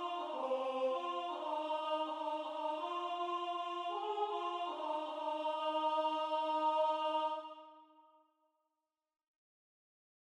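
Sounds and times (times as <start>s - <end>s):
soprano singing: 0.0s - 7.7s.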